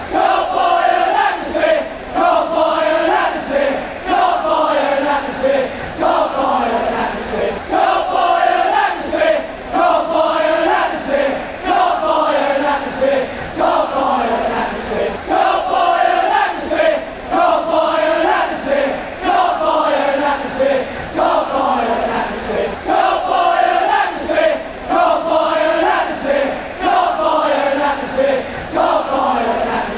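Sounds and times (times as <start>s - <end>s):
crowd chanting: 0.0s - 29.9s.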